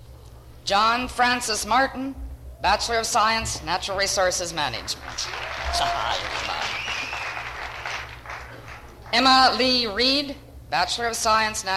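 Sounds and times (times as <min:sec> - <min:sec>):
speech: 0:00.7 - 0:06.9, 0:09.1 - 0:11.7
audience applauding graduates: 0:04.8 - 0:09.1.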